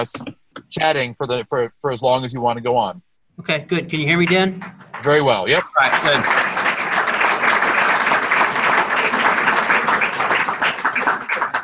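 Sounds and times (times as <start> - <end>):
speech: 0.0 - 6.5
audience applause: 4.8 - 11.6.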